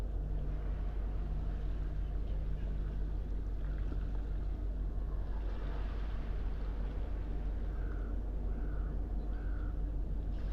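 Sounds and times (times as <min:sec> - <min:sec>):
distant engine hum: 0:00.0 - 0:10.5
smooth sea washing at sunrise: 0:00.0 - 0:10.5
faint bird calls: 0:07.6 - 0:10.0.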